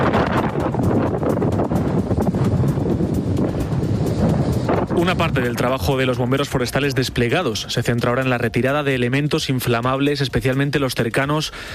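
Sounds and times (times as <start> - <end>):
strong gusts of wind during the Mierla forest fire: 0.0 - 8.6
speech: 5.0 - 11.7.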